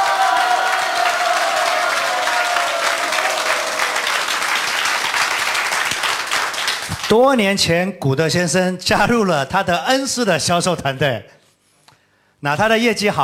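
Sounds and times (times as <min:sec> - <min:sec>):
faint cheering: 0:00.0 - 0:04.5
audience applause: 0:00.0 - 0:07.1
speech: 0:07.1 - 0:11.4, 0:12.4 - 0:13.2.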